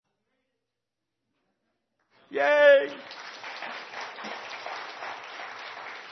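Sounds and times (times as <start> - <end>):
speech: 2.3 - 3.2
audience applause giving an ovation as a speaker reaches the podium: 2.4 - 6.1.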